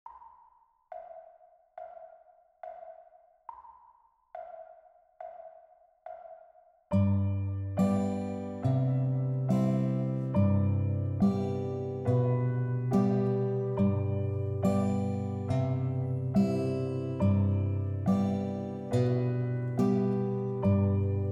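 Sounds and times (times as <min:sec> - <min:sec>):
guitar playing a German children's song: 0:07.0 - 0:21.3.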